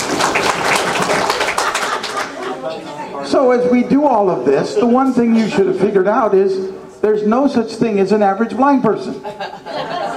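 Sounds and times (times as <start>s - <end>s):
audience clapping: 0.0s - 2.5s
laughter: 1.2s - 3.2s, 4.4s - 6.4s, 9.1s - 10.1s
speech: 3.5s - 9.7s.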